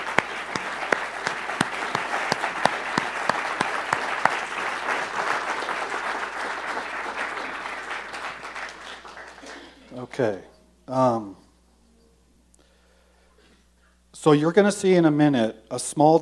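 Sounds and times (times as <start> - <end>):
audience applause: 0.0 - 10.1
speech: 10.2 - 11.4, 14.2 - 16.2.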